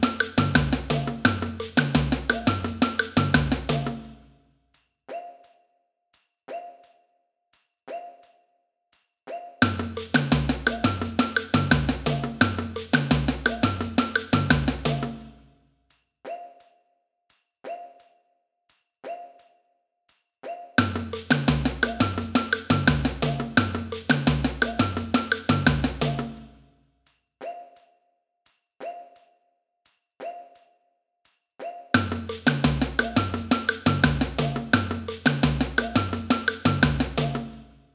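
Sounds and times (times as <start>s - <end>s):
samba band playing: 0.0s - 4.2s, 9.6s - 15.3s, 20.8s - 26.6s, 32.0s - 37.7s
cuica in a samba band: 0.0s - 4.4s, 9.3s - 15.5s, 20.4s - 26.7s, 31.6s - 37.9s.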